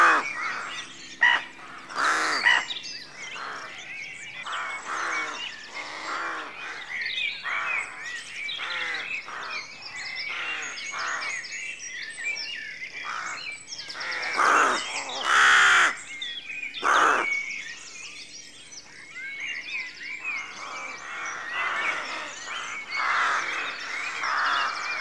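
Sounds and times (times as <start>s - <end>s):
rooks cawing in a rookery at dawn: 0.0s - 11.4s, 13.0s - 16.0s, 16.8s - 17.4s, 20.4s - 24.9s.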